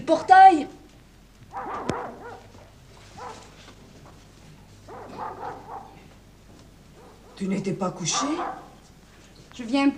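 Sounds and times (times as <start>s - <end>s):
dogs barking: 0.1s - 0.7s, 1.5s - 4.2s, 4.8s - 6.2s, 6.9s - 9.0s
speech: 0.1s - 0.8s, 7.4s - 8.6s, 9.6s - 9.9s.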